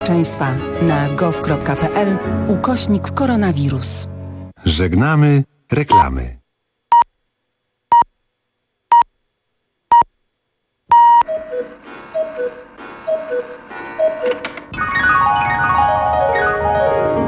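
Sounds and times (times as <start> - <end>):
speech: 0.1 - 6.4
Polish Radio Program Three cuckoo hourly time signal: 10.9 - 17.1.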